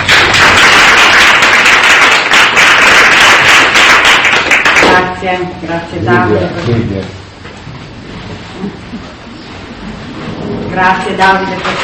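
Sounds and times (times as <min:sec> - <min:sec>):
audience applause: 0:00.0 - 0:04.9
speech: 0:05.2 - 0:07.2, 0:10.8 - 0:11.8.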